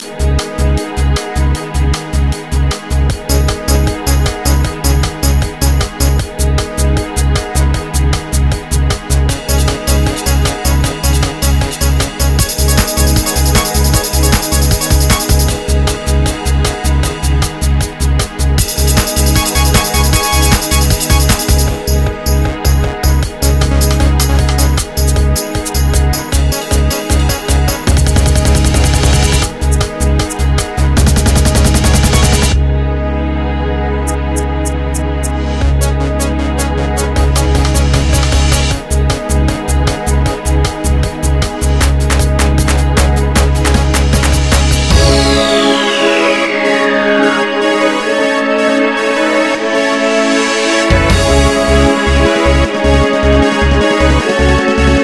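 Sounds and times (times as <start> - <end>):
EuroTrance music: 0.0 - 55.0.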